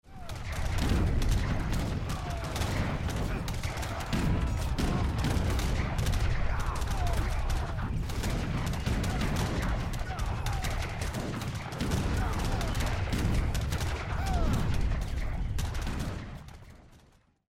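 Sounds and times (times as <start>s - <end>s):
battle music: 0.0s - 16.8s.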